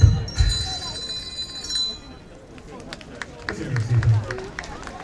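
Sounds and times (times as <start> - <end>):
hand bells: 0.0 - 2.2
beatboxing: 3.5 - 4.4.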